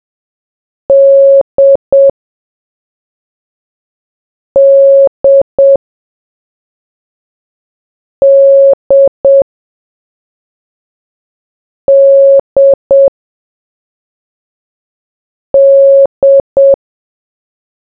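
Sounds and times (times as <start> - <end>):
morse code beeps: 0.9 - 2.1, 4.6 - 5.8, 8.2 - 9.4, 11.9 - 13.1, 15.6 - 16.8.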